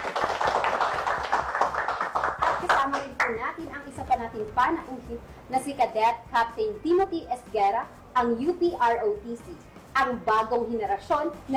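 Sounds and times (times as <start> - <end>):
audience applause at a ceremony: 0.0 - 2.8
speech: 2.8 - 11.5.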